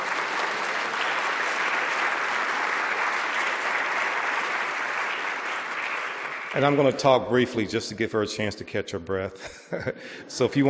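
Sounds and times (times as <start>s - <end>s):
audience applause: 0.0s - 7.2s
speech: 6.6s - 10.6s
laughter: 9.3s - 10.6s.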